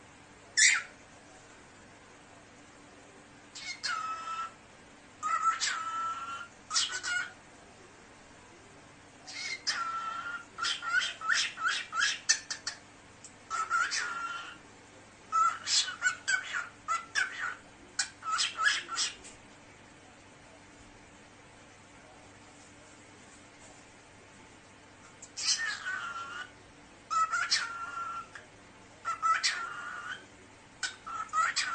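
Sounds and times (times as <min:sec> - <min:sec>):
cockatiel chattering and whistling: 0:00.6 - 0:00.9, 0:03.5 - 0:04.6, 0:05.2 - 0:07.4, 0:09.3 - 0:12.8, 0:13.5 - 0:14.6, 0:15.3 - 0:19.2, 0:25.3 - 0:26.5, 0:27.1 - 0:28.4, 0:29.0 - 0:31.7.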